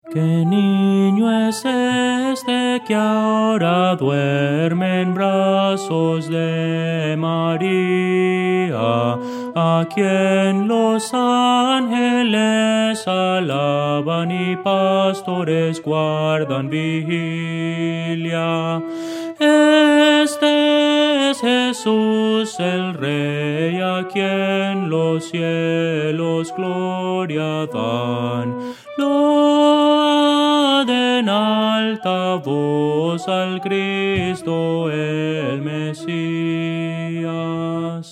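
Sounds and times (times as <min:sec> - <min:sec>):
Christian hymn melody: 0:00.0 - 0:38.1.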